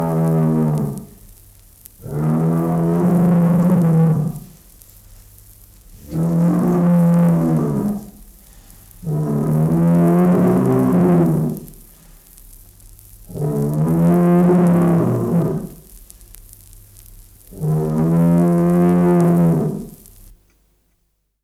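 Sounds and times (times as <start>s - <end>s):
bull mooing: 0.0s - 1.2s, 2.0s - 4.5s, 6.0s - 8.2s, 9.0s - 11.7s, 13.3s - 15.8s, 17.5s - 20.0s.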